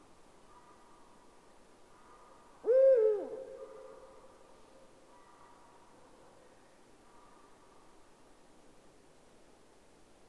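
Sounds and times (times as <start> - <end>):
Eurasian eagle-owl deep hoots: 2.6 - 3.8.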